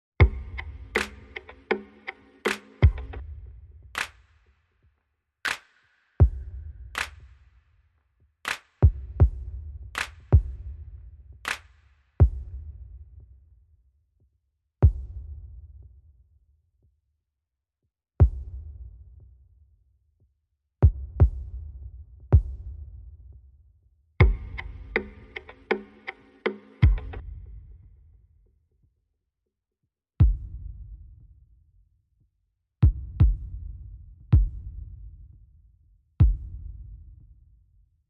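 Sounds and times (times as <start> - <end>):
drums: 0.2 - 4.3, 8.5 - 13.0, 14.8 - 15.6, 20.8 - 22.9, 24.2 - 27.4, 30.2 - 31.0, 32.8 - 35.0, 36.2 - 37.1.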